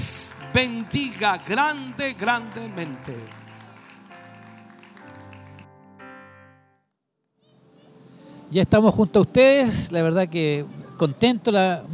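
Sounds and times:
speech: 0.0s - 3.4s, 8.5s - 11.9s
crowd applause: 0.0s - 5.8s.

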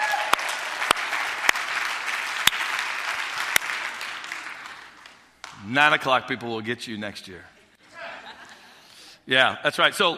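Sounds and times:
audience applause: 0.0s - 5.3s
speech: 5.7s - 7.5s, 9.3s - 10.1s
laughter: 7.8s - 8.8s.

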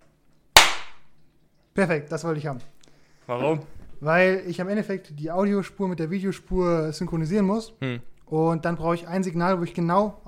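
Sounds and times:
single loud hand clap: 0.6s - 1.0s
speech: 1.8s - 10.2s.

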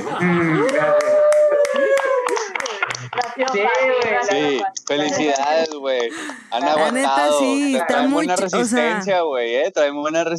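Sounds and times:
applause: 0.0s - 9.1s
laughter: 0.0s - 9.1s
speech: 0.2s - 0.9s, 3.5s - 10.3s.

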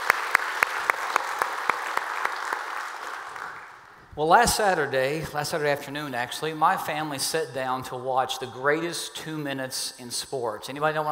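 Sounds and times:
church congregation at the North Garnett Wood campus applauding: 0.0s - 4.0s
speech: 4.2s - 11.0s.

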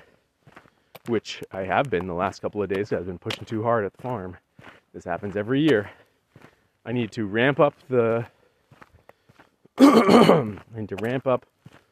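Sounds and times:
speech: 1.1s - 6.0s, 6.8s - 8.4s, 9.9s - 11.5s
throat clearing of phlegm: 9.8s - 10.6s.

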